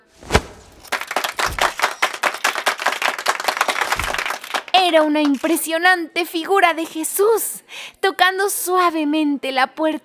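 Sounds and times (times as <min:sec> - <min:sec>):
warm applause: 0:00.7 - 0:05.6
speech: 0:04.8 - 0:10.0.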